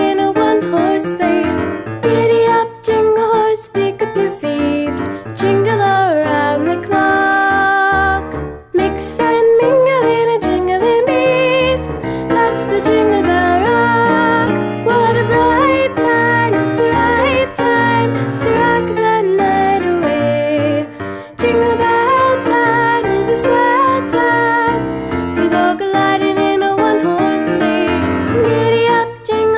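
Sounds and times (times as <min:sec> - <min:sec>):
person singing a Christmas pop song: 0:00.0 - 0:29.5.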